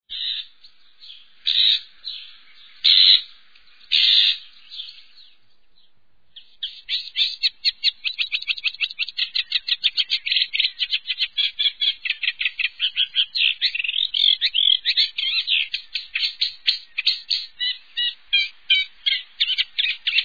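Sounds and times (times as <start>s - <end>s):
Eurasian reed warbler singing: 0.1s - 20.2s.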